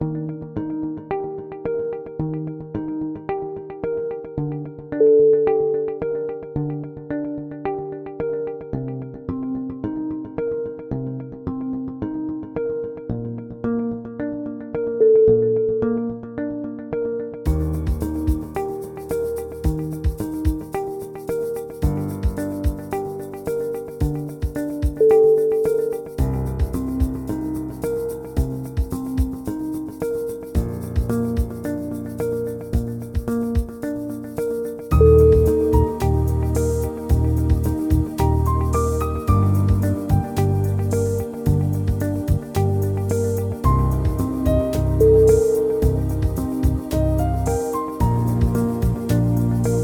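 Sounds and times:
neutral background noise: 0.0 - 49.8.

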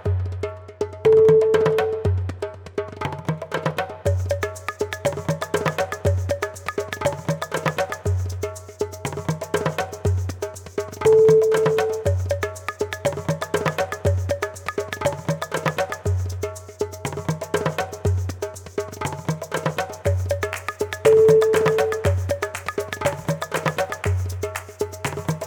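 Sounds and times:
tribal drumming: 0.0 - 25.4.

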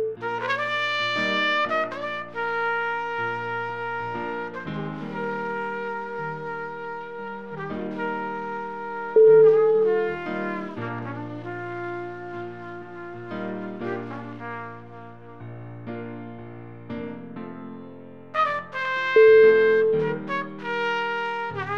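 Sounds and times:
smooth trumpet: 0.1 - 21.7.

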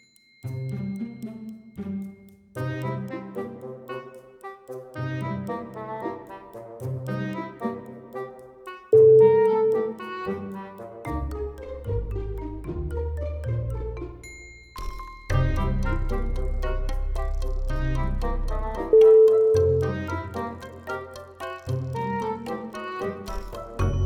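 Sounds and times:
cute robot theme music: 0.5 - 24.0.

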